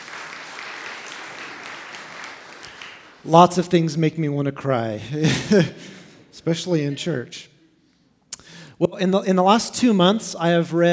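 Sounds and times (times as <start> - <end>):
crowd applauding: 0.0 - 3.6
speech: 3.2 - 7.5, 8.8 - 10.9.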